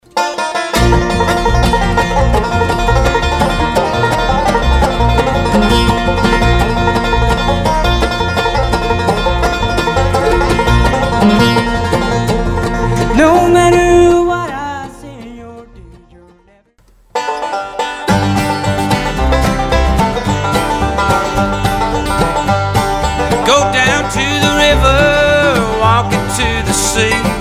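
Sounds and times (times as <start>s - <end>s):
banjo: 0.0s - 16.5s, 17.1s - 27.3s.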